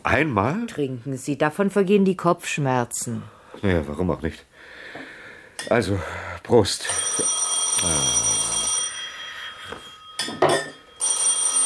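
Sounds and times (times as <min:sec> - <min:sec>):
speech: 0:00.1 - 0:04.9, 0:05.6 - 0:08.2
telephone ringing: 0:06.8 - 0:11.6.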